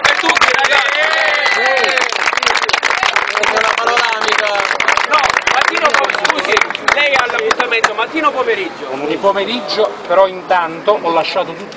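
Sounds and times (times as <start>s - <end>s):
applause: 0.0s - 8.0s
speech: 8.1s - 11.7s.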